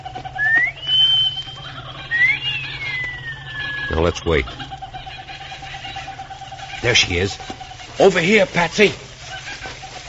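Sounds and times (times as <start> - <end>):
laughter: 0.0 - 10.0
human wolf whistle: 0.4 - 4.4
speech: 3.9 - 4.7, 6.8 - 9.0.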